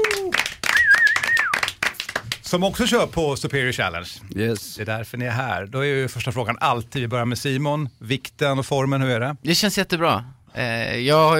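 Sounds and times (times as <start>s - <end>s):
applause for a guest: 0.0s - 2.6s
speech: 2.5s - 11.3s.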